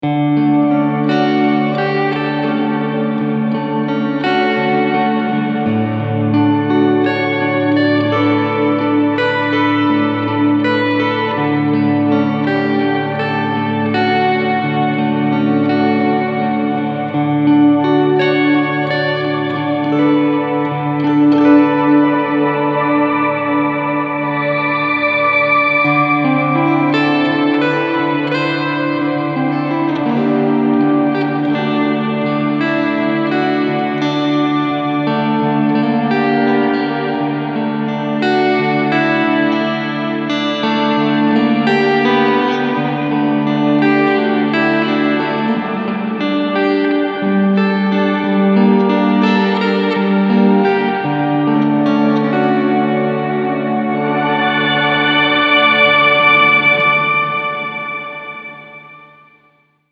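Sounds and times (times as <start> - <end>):
shimmering amp tone: 0.0 - 59.6.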